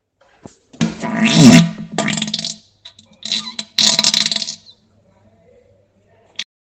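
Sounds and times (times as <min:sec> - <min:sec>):
explosive diarrhea: 0:00.8 - 0:02.6, 0:03.2 - 0:04.7.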